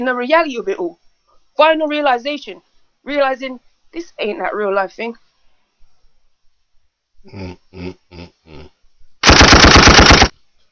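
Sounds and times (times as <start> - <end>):
speech: 0.0 - 1.0, 1.6 - 5.2, 7.2 - 8.7
automatic gunfire sound effect: 9.2 - 10.3.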